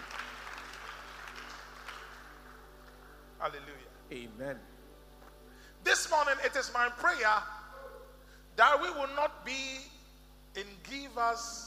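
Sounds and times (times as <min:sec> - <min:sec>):
crowd clapping: 0:00.0 - 0:03.2
speech: 0:03.4 - 0:04.8, 0:05.9 - 0:07.6, 0:08.6 - 0:09.9, 0:10.6 - 0:11.6.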